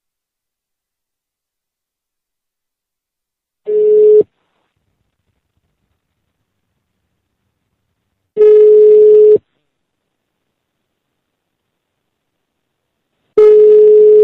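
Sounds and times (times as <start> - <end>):
telephone ringback tone from a call placed from an office: 3.7 - 4.2, 8.4 - 9.4, 13.4 - 14.2.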